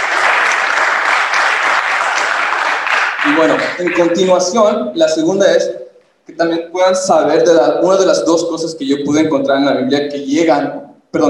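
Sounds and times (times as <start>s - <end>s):
applause: 0.0s - 4.3s
speech: 3.3s - 11.2s.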